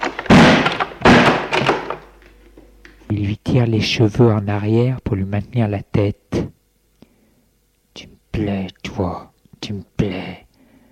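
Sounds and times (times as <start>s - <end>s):
door closing: 0.0s - 2.1s
speech: 3.1s - 6.5s.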